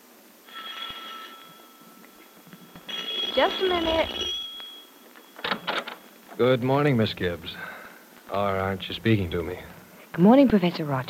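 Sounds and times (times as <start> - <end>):
doorbell ringing: 0.5 - 6.7
speech: 3.4 - 4.3, 6.4 - 7.7, 8.3 - 11.0.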